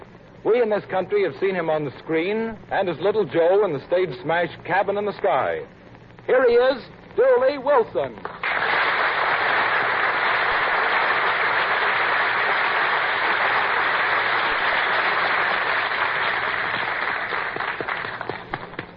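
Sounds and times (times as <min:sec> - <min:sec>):
speech: 0:00.4 - 0:08.4
audience applause: 0:08.4 - 0:18.9.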